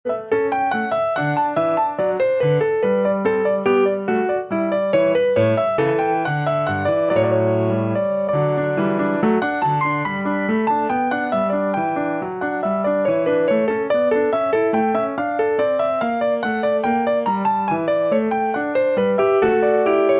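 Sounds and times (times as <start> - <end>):
baroque keyboard suite allemande: 0.1 - 20.1.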